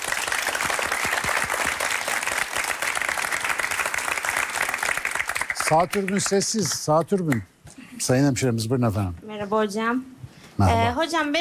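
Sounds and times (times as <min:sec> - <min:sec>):
audience applause: 0:00.0 - 0:07.0
speech: 0:05.7 - 0:11.4.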